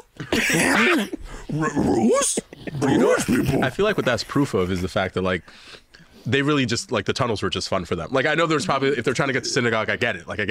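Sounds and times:
speech: 0.4s - 10.4s
human voice imitating a dog whimpering and whining: 1.5s - 3.6s.

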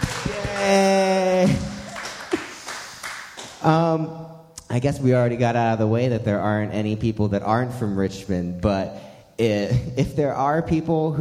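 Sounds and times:
live audience applause: 0.0s - 3.6s
speech: 0.3s - 1.6s, 3.6s - 11.1s
person calling out: 0.3s - 1.8s.

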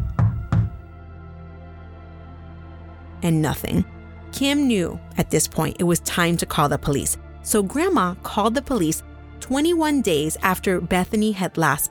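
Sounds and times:
knocking on a house door: 0.0s - 0.8s
speech: 3.2s - 11.8s.

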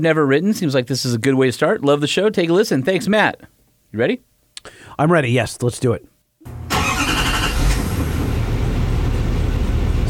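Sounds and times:
speech: 0.0s - 6.6s
diesel engine starting with chirpy starter: 6.5s - 10.0s.

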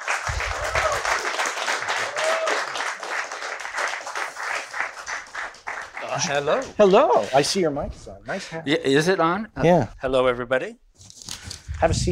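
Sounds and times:
audience applause welcoming a guest onto a talk show about music recording: 0.0s - 6.8s
speech: 6.2s - 10.8s, 11.8s - 12.0s.

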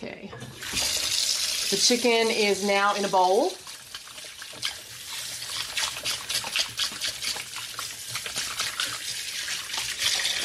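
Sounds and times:
speech: 1.7s - 3.6s
washing hands under running tap water: 3.5s - 10.4s.

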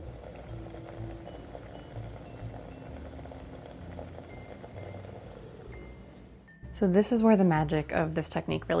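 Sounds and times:
cream simmering in a pan: 0.0s - 6.4s
speech: 6.8s - 8.7s.

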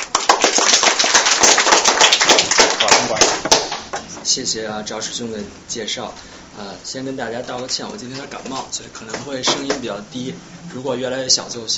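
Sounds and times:
audience applause: 0.0s - 3.8s
speech: 4.3s - 11.7s.

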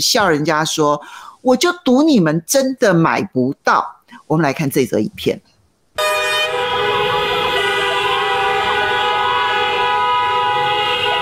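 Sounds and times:
speech: 0.0s - 6.2s
car horns honking in traffic: 6.0s - 11.2s.

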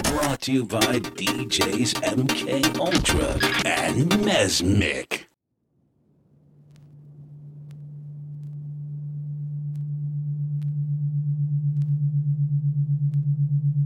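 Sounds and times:
speech: 0.3s - 5.2s
low synthesized hum representing the alpha brainwave: 5.9s - 13.8s.

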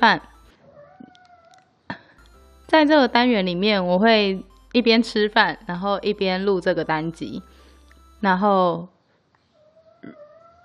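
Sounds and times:
speech: 0.0s - 0.3s, 2.7s - 7.5s, 8.2s - 8.9s
cat meowing: 0.7s - 1.7s.

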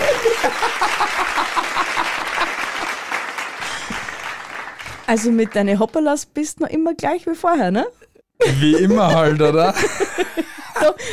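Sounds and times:
laughter: 0.0s - 3.0s, 8.4s - 11.1s
applause: 0.0s - 6.0s
speech: 0.4s - 1.2s, 5.1s - 11.1s.

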